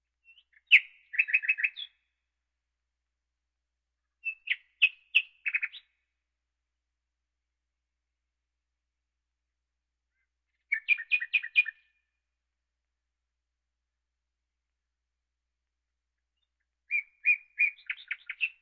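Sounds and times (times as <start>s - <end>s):
birds: 0.2s - 2.2s, 4.0s - 6.1s, 10.1s - 12.2s, 16.2s - 18.6s.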